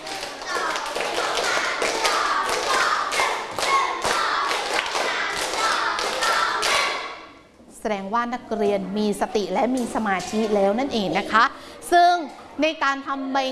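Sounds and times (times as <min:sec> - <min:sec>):
rhythmic clapping in steps: 0:00.0 - 0:07.3
speech: 0:07.9 - 0:13.5.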